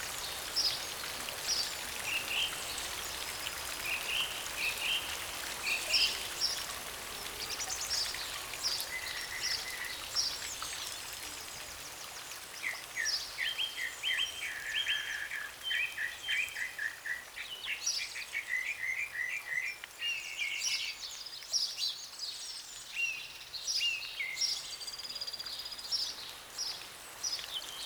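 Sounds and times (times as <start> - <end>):
rain shower in a deep forest: 0.0 - 18.8, 25.5 - 27.8
songbirds: 0.0 - 27.8.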